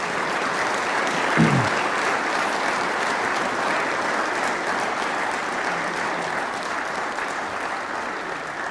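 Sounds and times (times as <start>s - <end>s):
audience applause: 0.0s - 8.6s.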